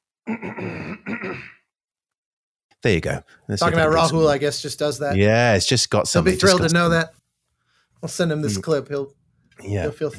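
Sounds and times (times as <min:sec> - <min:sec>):
throat clearing: 0:00.3 - 0:01.6
speech: 0:02.8 - 0:07.2, 0:08.0 - 0:10.1.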